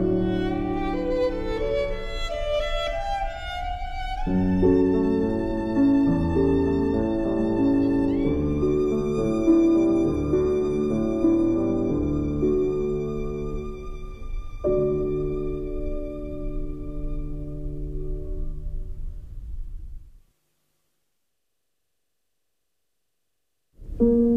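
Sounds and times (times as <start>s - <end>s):
violin: 0.0s - 18.8s
piano: 0.0s - 20.1s, 23.8s - 24.3s.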